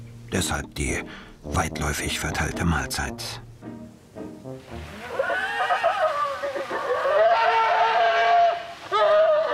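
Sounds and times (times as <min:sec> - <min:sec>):
speech: 0:00.3 - 0:03.8
bears squabbling and screaming over food: 0:04.9 - 0:09.5.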